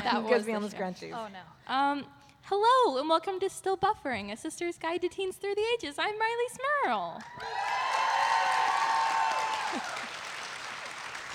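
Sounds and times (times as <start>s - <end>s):
speech: 0.0s - 7.9s
live audience whooping: 7.2s - 10.5s
live audience clapping at a convention stage show: 7.2s - 11.3s.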